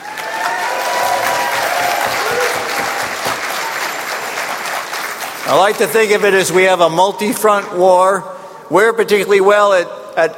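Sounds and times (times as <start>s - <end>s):
audience applauding state-level affiliates of an organization: 0.0s - 6.5s
speech: 5.5s - 10.3s.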